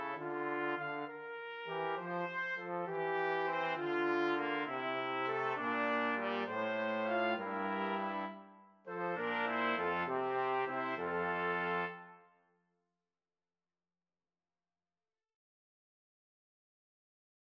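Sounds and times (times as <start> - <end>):
pastorale played by two trumpets and trombone: 0.0 - 12.2.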